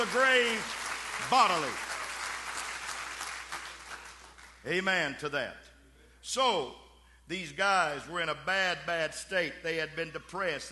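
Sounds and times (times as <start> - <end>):
speech: 0.0 - 1.9, 4.6 - 5.6, 6.2 - 10.7
clapping hands: 0.0 - 4.6.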